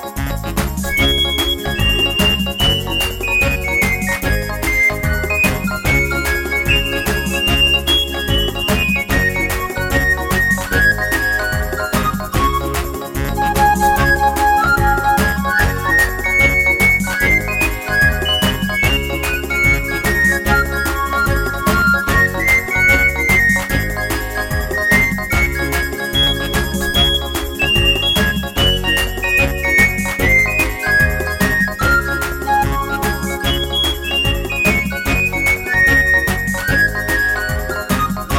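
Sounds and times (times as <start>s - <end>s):
ska music: 0.0s - 38.3s.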